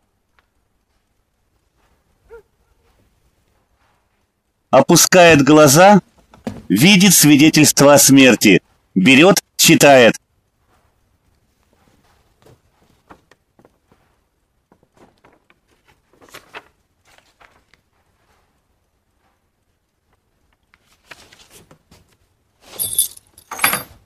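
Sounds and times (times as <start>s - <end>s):
speech: 4.7s - 6.1s, 6.7s - 10.2s
keys being set down beside a document: 22.7s - 24.0s.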